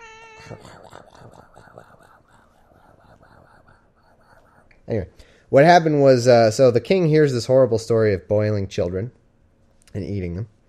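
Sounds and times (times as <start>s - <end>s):
cat: 0.0s - 4.7s
speech: 0.4s - 2.3s, 4.9s - 9.2s, 9.9s - 10.6s.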